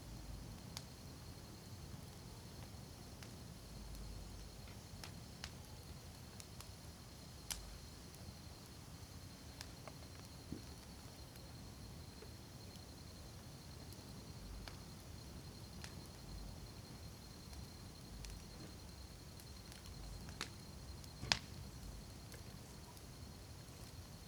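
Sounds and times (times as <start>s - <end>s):
crickets chirping: 0.0s - 24.2s
campfire wood crackling at night: 0.1s - 24.2s.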